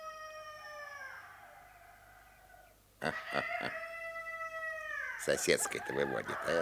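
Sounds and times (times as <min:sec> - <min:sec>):
rooster crowing: 0:00.0 - 0:06.6
speech: 0:03.0 - 0:03.9, 0:05.2 - 0:06.6.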